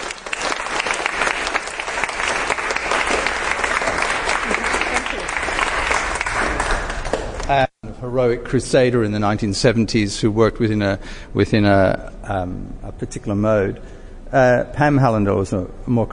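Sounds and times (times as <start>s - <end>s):
audience applause: 0.0s - 7.5s
speech: 7.5s - 16.1s.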